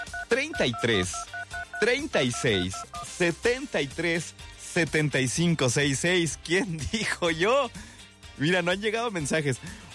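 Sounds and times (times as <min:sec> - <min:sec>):
telephone DTMF dialing tones: 0:00.0 - 0:03.1
speech: 0:00.3 - 0:09.8.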